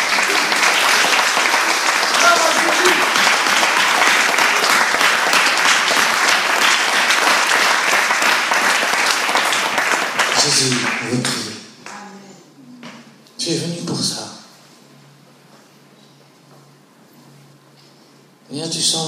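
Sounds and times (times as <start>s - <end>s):
thunderous applause from audience: 0.0s - 11.6s.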